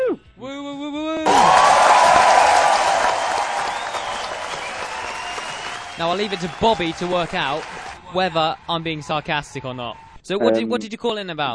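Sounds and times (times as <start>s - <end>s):
round of applause: 1.2s - 8.0s
speech: 6.0s - 11.5s.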